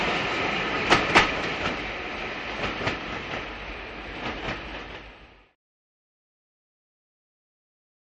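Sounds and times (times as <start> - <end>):
electric train arriving into station, idling and departing: 0.0 - 5.6.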